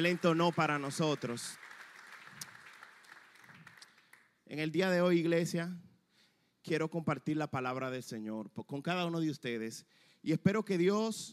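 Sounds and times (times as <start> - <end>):
speech: 0.0 - 1.7, 4.5 - 5.9, 6.6 - 11.3
audience applause: 0.0 - 4.3.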